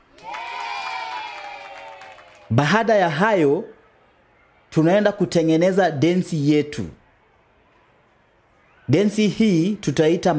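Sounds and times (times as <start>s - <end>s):
group clapping for themselves during a dance lesson: 0.0s - 2.5s
speech: 2.5s - 3.8s, 4.7s - 7.0s, 8.9s - 10.3s.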